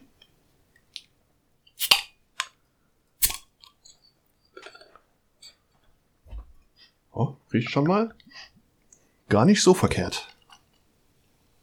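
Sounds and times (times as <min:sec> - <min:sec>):
beer bottle being opened: 0:01.8 - 0:02.1, 0:03.2 - 0:03.5
speech: 0:07.5 - 0:08.2, 0:09.3 - 0:10.3.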